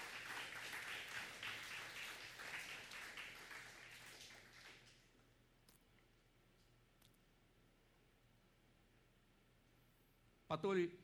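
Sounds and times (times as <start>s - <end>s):
church congregation applauding: 0.0s - 5.1s.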